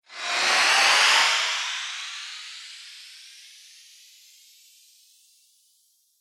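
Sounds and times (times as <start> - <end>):
sci-fi laser UFO flyby: 0.0 - 3.5.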